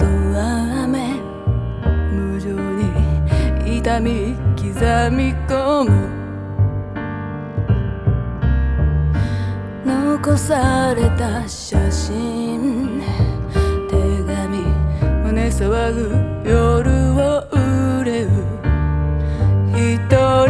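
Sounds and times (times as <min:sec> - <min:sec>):
voice: 0:00.0 - 0:01.2, 0:02.2 - 0:06.1, 0:09.9 - 0:18.5
piano: 0:00.0 - 0:20.4.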